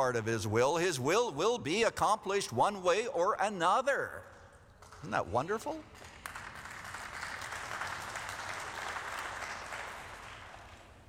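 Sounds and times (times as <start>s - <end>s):
speech: 0.0s - 4.4s, 5.0s - 6.1s
audience clapping: 4.8s - 11.0s.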